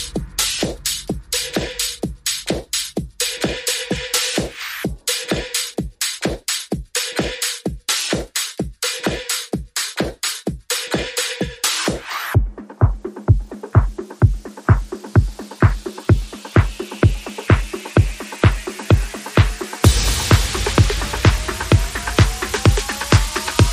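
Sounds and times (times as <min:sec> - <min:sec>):
bass: 0:00.0 - 0:05.0, 0:12.4 - 0:23.7
percussion: 0:00.0 - 0:23.7
sound effects: 0:19.8 - 0:23.7.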